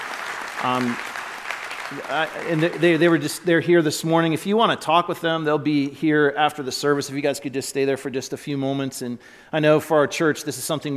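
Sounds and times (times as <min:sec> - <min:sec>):
audience applause welcoming guests: 0:00.0 - 0:03.4
speech: 0:00.6 - 0:01.2, 0:01.9 - 0:10.9.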